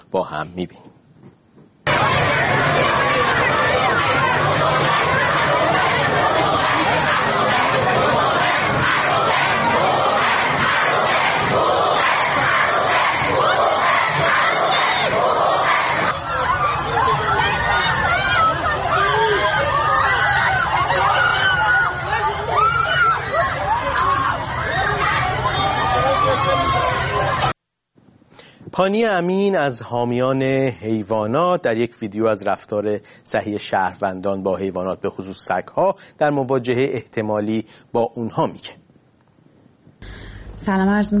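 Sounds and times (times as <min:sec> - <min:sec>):
speech: 0:00.1 - 0:01.0, 0:28.8 - 0:38.8, 0:40.6 - 0:41.1
large crowd chanting and shouting at a protest: 0:01.8 - 0:27.6.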